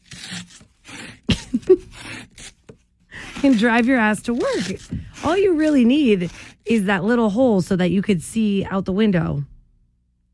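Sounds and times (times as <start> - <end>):
credit card scraping in mimicry of scraping ice off a windshield: 0.0 - 6.6
speech: 3.4 - 9.5.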